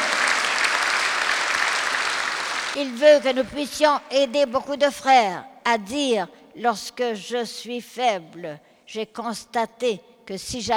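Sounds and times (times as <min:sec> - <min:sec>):
church congregation applause: 0:00.0 - 0:02.8
speech: 0:02.8 - 0:10.7.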